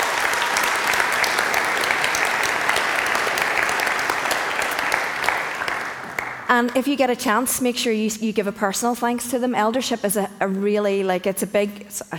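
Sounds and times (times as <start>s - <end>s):
audience applause: 0.0s - 6.6s
speech: 6.5s - 12.1s.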